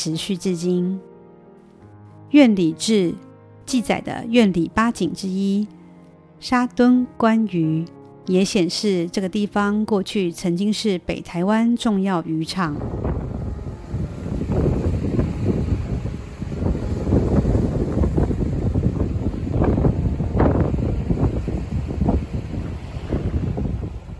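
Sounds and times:
speech: 0.0 - 1.1, 2.3 - 5.8, 6.4 - 13.3
seashore waves washing: 12.7 - 24.1
strong seashore wind buffeting the microphone: 12.7 - 24.1.

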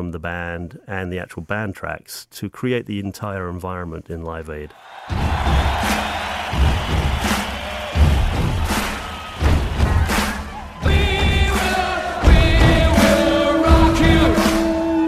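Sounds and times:
speech: 0.0 - 7.0
stadium crowd clapping: 4.8 - 13.4
stadium crowd stomping: 4.8 - 15.0.

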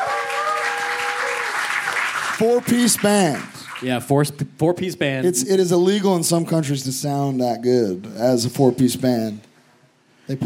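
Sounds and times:
crowd clapping for a band: 0.0 - 4.0
speech: 2.4 - 9.5, 10.3 - 10.4.

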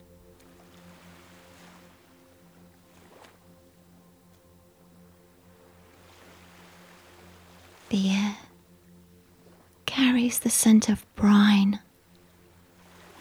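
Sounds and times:
slight breeze: 0.0 - 13.1
soft ripples on the surface of the sea: 0.0 - 13.1
speech: 7.9 - 8.4, 10.1 - 11.8.

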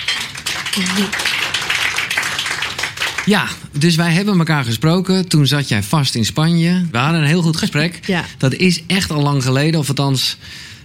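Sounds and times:
applause: 0.0 - 3.6
speech: 0.8 - 1.3, 3.2 - 10.8.

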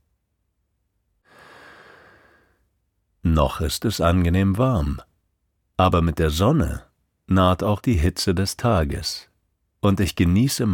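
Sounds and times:
deep breath: 1.2 - 2.7
speech: 3.4 - 5.1, 5.8 - 10.7.

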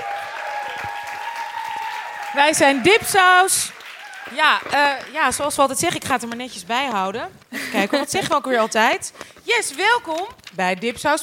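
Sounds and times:
audience applause: 0.0 - 5.2
speech: 2.3 - 11.2.

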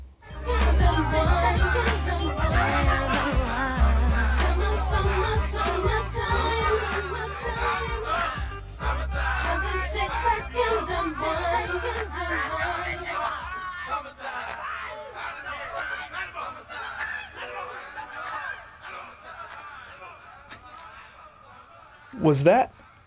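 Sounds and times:
song: 0.2 - 14.0
voices: 0.3 - 23.0
people clapping: 1.8 - 3.6, 4.2 - 4.9, 5.5 - 8.5, 9.4 - 10.0, 10.6 - 17.3, 18.1 - 21.1.

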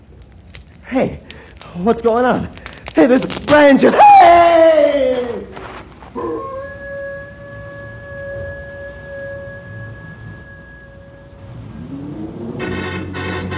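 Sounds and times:
speech: 0.9 - 4.8
wolves howling: 6.0 - 12.6.

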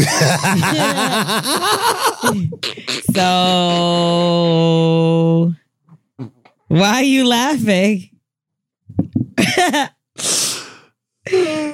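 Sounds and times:
laughter: 0.0 - 2.6
speech: 0.1 - 5.6, 6.2 - 8.1, 9.0 - 10.5, 11.3 - 11.7
person sneezing: 2.6 - 3.1.

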